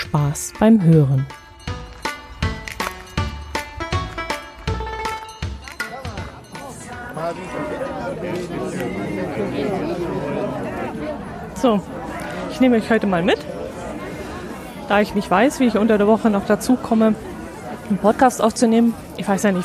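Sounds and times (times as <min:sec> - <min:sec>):
speech: 0:00.1 - 0:01.5, 0:07.3 - 0:10.3, 0:11.6 - 0:12.0, 0:12.6 - 0:13.6, 0:14.9 - 0:17.3, 0:17.9 - 0:19.6
rhythmic clacking hits: 0:01.0 - 0:07.1
crowd chatter at outdoor harbour Christmas market: 0:02.1 - 0:19.6.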